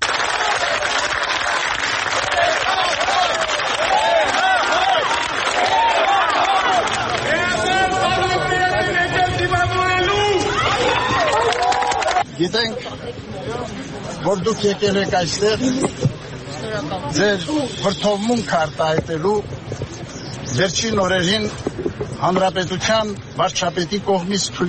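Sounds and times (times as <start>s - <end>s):
crowd applauding outside an arrival hall: 0.0s - 8.4s, 10.5s - 12.3s
crowd calling out to the departing Catholicos: 2.0s - 12.3s
speech: 14.3s - 16.0s, 16.7s - 19.6s, 20.5s - 24.6s.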